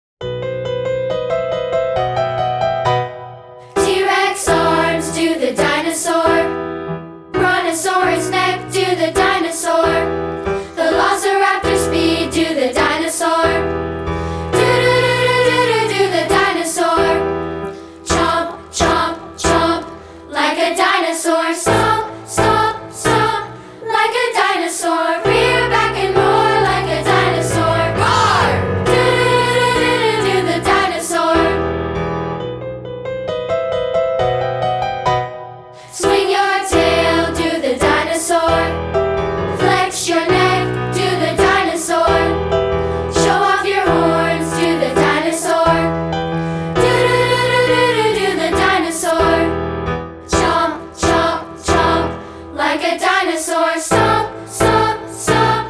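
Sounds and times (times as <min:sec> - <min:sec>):
piano: 0:00.2 - 0:55.6.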